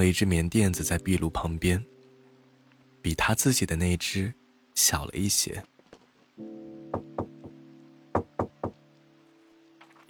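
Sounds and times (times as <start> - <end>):
speech: 0.0 - 1.9, 3.0 - 5.7
knocking on a door: 6.9 - 8.8.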